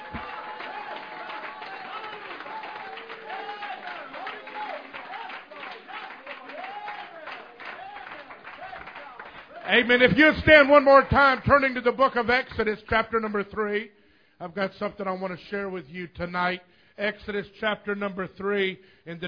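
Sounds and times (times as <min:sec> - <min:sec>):
people clapping: 0:00.0 - 0:11.8
speech: 0:09.7 - 0:19.2.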